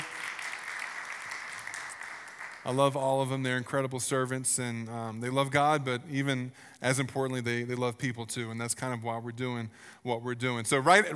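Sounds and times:
crowd clapping: 0.0s - 3.2s
speech: 2.6s - 11.1s.

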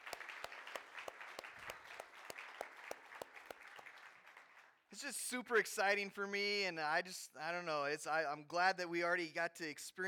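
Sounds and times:
audience applause: 0.0s - 4.8s
speech: 4.9s - 10.0s.

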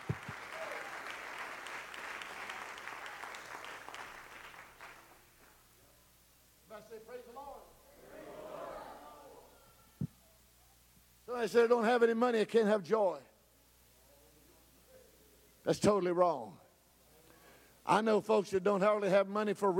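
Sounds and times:
audience clapping: 0.0s - 5.7s
speech: 11.4s - 13.3s, 15.7s - 16.6s, 17.9s - 19.7s.

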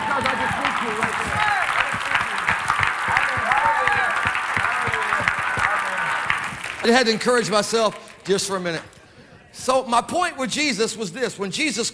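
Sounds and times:
hand clapping: 0.0s - 9.0s
speech: 6.8s - 8.9s, 9.5s - 11.9s.

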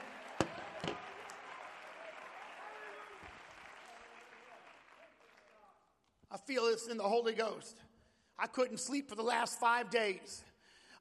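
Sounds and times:
audience shouting praise: 0.0s - 3.4s
audience clapping hands: 0.0s - 5.9s
speech: 6.4s - 10.9s.

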